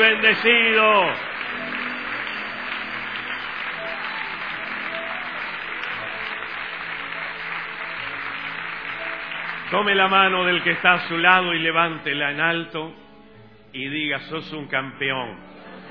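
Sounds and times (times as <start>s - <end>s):
speech: 0.0s - 1.8s, 9.7s - 13.0s, 13.7s - 15.5s
audience applauding: 0.0s - 12.2s.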